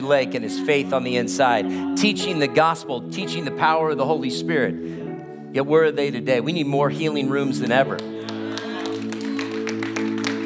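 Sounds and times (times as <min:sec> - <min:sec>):
speech: 0:00.0 - 0:08.4
audience clapping: 0:07.8 - 0:10.4.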